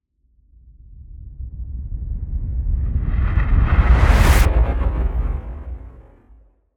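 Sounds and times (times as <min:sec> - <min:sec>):
whoosh: 0:02.8 - 0:06.3.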